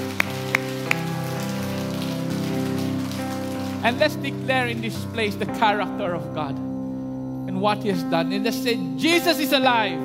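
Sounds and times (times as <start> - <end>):
crowd clapping: 0.0 - 4.4
keyboard chords: 0.0 - 10.0
speech: 3.8 - 6.8, 7.6 - 10.0.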